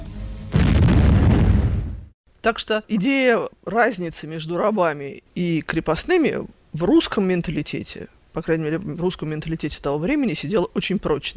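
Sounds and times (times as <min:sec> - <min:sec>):
warning cannon shot explosion: 0:00.5 - 0:02.1
speech: 0:02.4 - 0:11.3.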